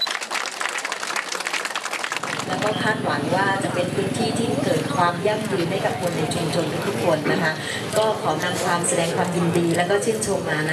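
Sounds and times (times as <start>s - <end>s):
applause: 0.0s - 3.0s
speech: 2.5s - 10.7s.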